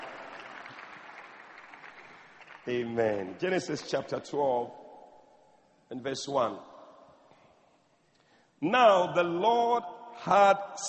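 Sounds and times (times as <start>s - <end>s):
audience clapping: 0.0s - 3.4s
speech: 2.6s - 4.8s, 5.9s - 6.7s, 8.6s - 10.8s.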